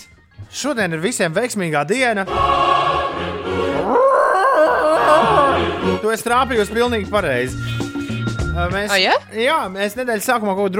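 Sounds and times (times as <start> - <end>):
speech: 0.6 - 3.3, 5.1 - 7.8, 8.6 - 10.7
person imitating a Wookiee growling roar: 3.8 - 5.8.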